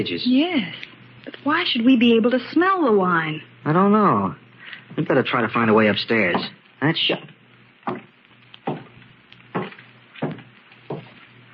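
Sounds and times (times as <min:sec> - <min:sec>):
speech: 0:00.0 - 0:07.3, 0:07.9 - 0:08.1
footsteps upstairs: 0:07.8 - 0:11.4.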